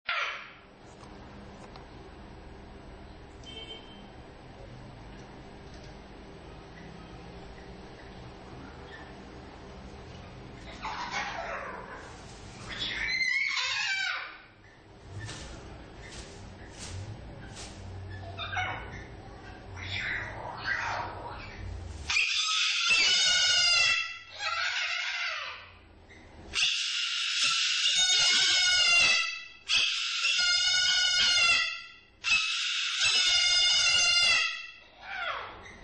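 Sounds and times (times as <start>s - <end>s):
parrots singing: 10.6s - 35.8s.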